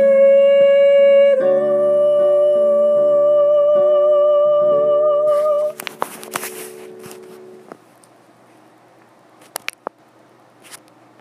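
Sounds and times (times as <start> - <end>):
soprano singing solfege: 0.0 - 7.7.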